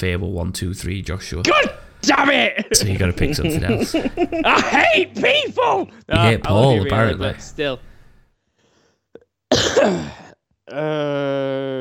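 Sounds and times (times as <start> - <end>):
speech: 0.0 - 7.9, 9.8 - 11.7
laughter: 2.6 - 5.9
loud harsh cough: 9.5 - 10.4.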